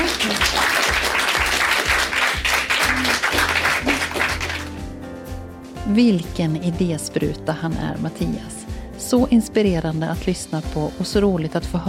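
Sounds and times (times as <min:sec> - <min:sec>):
audience applause: 0:00.0 - 0:04.8
speech: 0:05.9 - 0:11.8.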